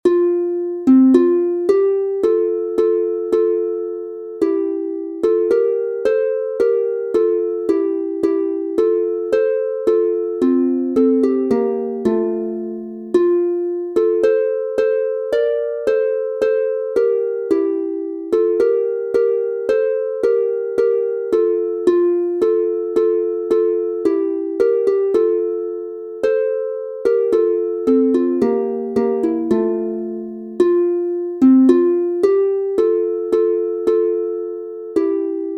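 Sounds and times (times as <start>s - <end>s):
harp instrumental in F major: 0.0s - 35.5s.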